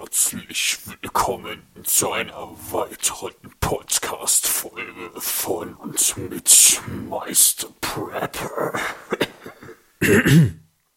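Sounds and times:
speech: 0:00.1 - 0:09.2, 0:10.0 - 0:10.6
throat clearing to dislodge a piece of pumpkin stuck in the throat: 0:08.9 - 0:10.7.

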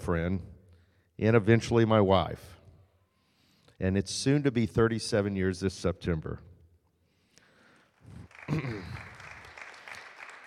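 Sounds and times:
speech: 0:00.0 - 0:00.6, 0:01.2 - 0:02.6, 0:03.8 - 0:06.5, 0:08.1 - 0:09.0
audience applause: 0:08.0 - 0:10.4.

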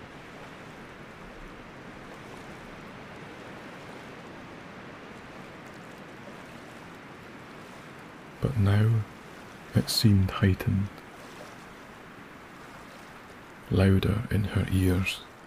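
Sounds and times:
lapping water of a loch: 0:00.0 - 0:15.4
speech: 0:08.4 - 0:09.1, 0:09.7 - 0:11.0, 0:13.7 - 0:15.3.

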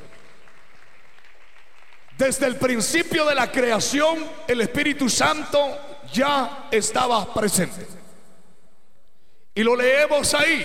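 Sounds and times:
hands clapping: 0:00.0 - 0:02.5
speech: 0:02.2 - 0:08.0, 0:09.6 - 0:10.6.

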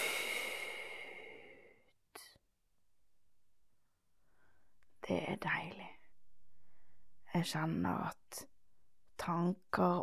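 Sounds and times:
person breathing out: 0:00.0 - 0:01.8
speech: 0:05.1 - 0:06.0, 0:07.4 - 0:08.5, 0:09.2 - 0:10.0.

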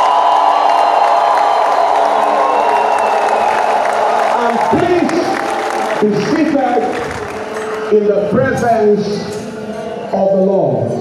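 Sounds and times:
audience clapping: 0:00.0 - 0:07.9
speech: 0:04.7 - 0:05.0, 0:06.0 - 0:07.1, 0:07.9 - 0:09.4, 0:10.1 - 0:10.9.

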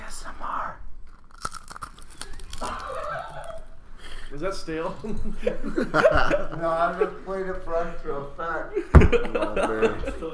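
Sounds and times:
crunchy food being chewed: 0:01.0 - 0:03.8
laughter: 0:02.6 - 0:03.8, 0:04.8 - 0:07.4, 0:08.7 - 0:10.3
speech: 0:04.4 - 0:10.3.

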